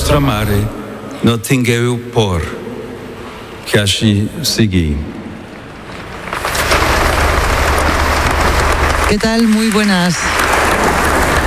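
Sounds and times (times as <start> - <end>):
speech: 0.1 - 2.6, 3.7 - 5.2, 9.1 - 10.4
crowd applauding after speech by Pope Leo XIV: 6.7 - 11.4.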